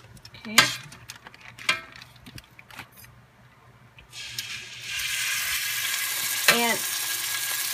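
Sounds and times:
speech: 0:00.5 - 0:00.9
chicken searing in olive oil: 0:04.1 - 0:07.7.

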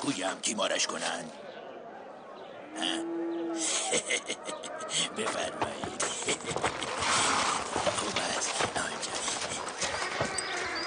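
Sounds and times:
speech: 0:00.0 - 0:01.5, 0:02.8 - 0:07.2
low busy background: 0:00.0 - 0:10.8
laughter: 0:03.6 - 0:07.4
horse hooves clip-clopping: 0:05.1 - 0:10.8.

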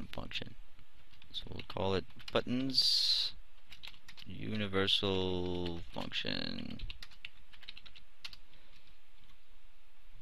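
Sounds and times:
person typing code on a computer keyboard: 0:01.0 - 0:02.8, 0:03.6 - 0:04.4, 0:05.3 - 0:09.4
speech: 0:01.4 - 0:03.4, 0:04.3 - 0:07.0.

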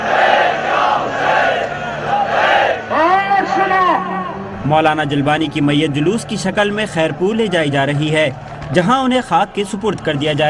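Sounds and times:
mourners chanting protest slogans at a cleric's funeral in Pakistan: 0:00.0 - 0:04.6
speech: 0:04.6 - 0:10.4.

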